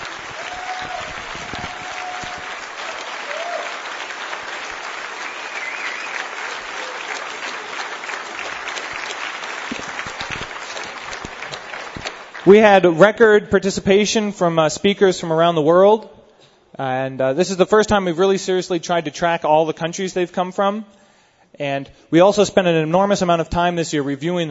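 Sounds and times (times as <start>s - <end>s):
audience applause: 0.0s - 12.8s
speech: 12.5s - 16.2s, 16.8s - 24.4s.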